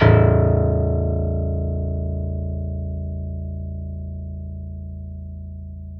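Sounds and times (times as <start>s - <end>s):
Steinway piano note A0: 0.0s - 5.9s.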